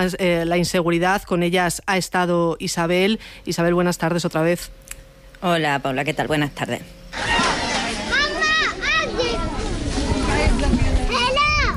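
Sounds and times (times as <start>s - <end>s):
speech: 0.0s - 7.4s
children playing on outdoor sports courts of Sidi Mbarek: 7.1s - 11.7s.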